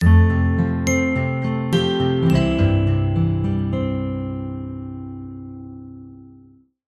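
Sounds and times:
glockenspiel: 0.0s - 4.7s
piano: 0.0s - 6.6s
picked guitar: 0.0s - 6.6s
warm sincere multimedia signature ident music: 0.0s - 6.6s
bass: 0.0s - 6.7s.

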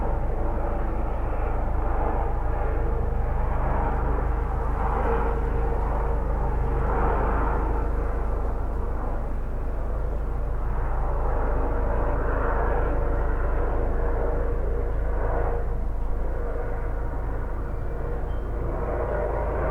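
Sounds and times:
police transport helicopter flying overhead searching: 0.0s - 19.7s.

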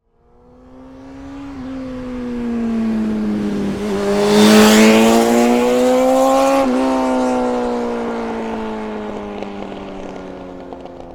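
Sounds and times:
Honda Hornet race bike passing fast: 0.1s - 11.1s.

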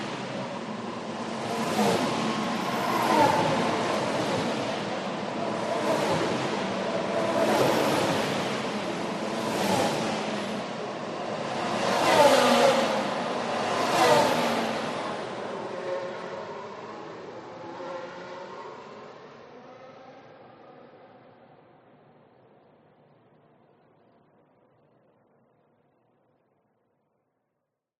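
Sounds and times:
F1 race car passing at speed on a race track: 0.0s - 21.4s.

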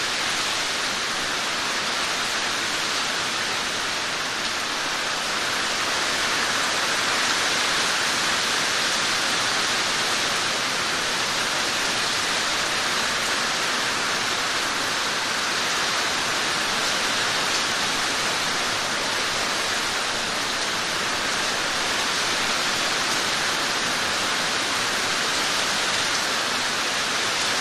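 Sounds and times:
heavy rain storm on a roof outdoors: 0.0s - 27.5s.

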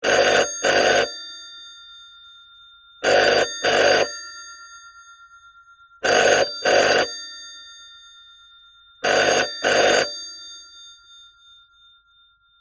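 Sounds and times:
Siemens H70 phone ringing, Australian standard ring: 0.0s - 1.7s, 3.0s - 4.6s, 6.0s - 7.6s, 9.0s - 10.8s.

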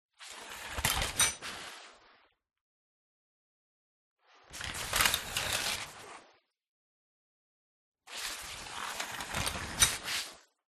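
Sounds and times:
shower curtain sliding: 0.1s - 2.2s, 4.2s - 6.5s, 8.1s - 10.6s.

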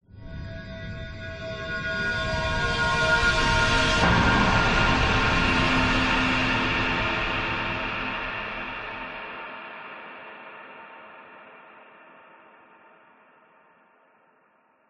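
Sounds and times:
horror atmospheric mystery swell: 0.2s - 9.3s.

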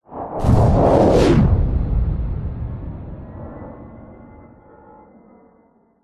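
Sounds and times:
fighter jet sonic boom: 0.1s - 4.6s.

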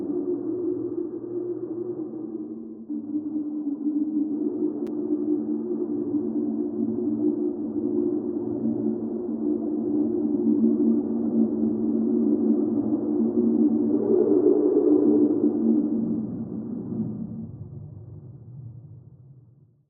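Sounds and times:
supernatural alien wind sound design: 0.0s - 19.5s.

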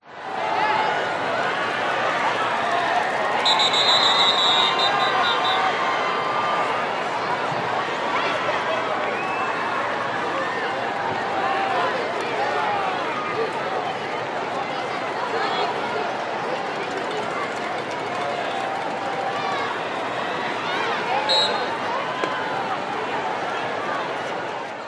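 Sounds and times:
American football match crowd noise: 0.0s - 24.8s
referee whistle: 3.4s - 5.7s, 21.2s - 21.8s.

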